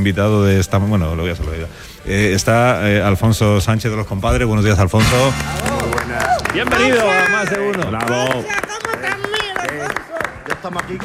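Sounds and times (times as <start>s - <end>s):
speech: 0.0s - 5.8s, 6.5s - 8.7s, 10.6s - 11.0s
flamenco rhythmic handclapping: 5.0s - 11.0s.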